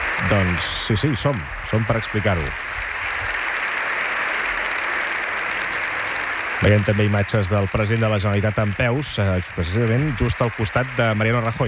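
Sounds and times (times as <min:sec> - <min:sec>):
audience applause: 0:00.0 - 0:11.6
speech: 0:00.3 - 0:02.7, 0:06.6 - 0:11.6.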